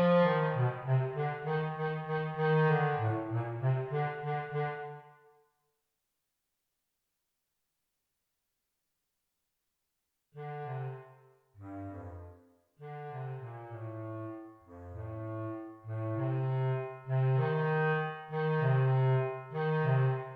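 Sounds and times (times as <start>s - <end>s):
solo bass clarinet playing a finale: 0.0s - 5.2s, 10.4s - 20.3s.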